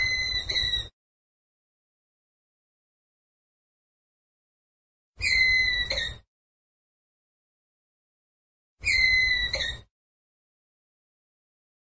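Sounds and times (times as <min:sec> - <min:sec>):
ground squirrel whistled call: 0:00.0 - 0:00.9, 0:05.2 - 0:06.2, 0:08.8 - 0:09.8.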